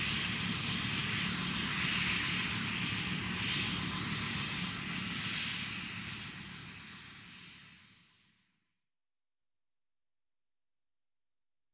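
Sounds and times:
big helicopter approaching and landing: 0.0 - 8.0.

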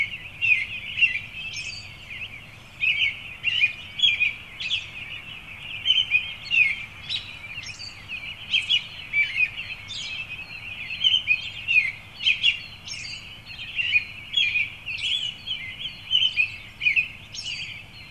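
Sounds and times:
birds chirping in early morning: 0.0 - 18.0.

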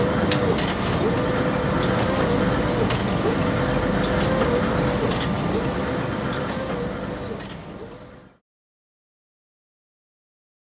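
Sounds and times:
hydraulic industrial machine running: 0.0 - 8.4.

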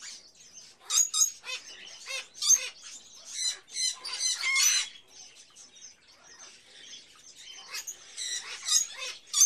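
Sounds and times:
hatchling bird chirping: 0.0 - 9.4.

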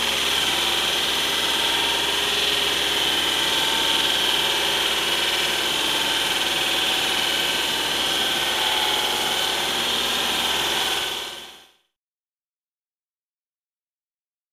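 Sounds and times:
construction noise: 0.0 - 11.6.

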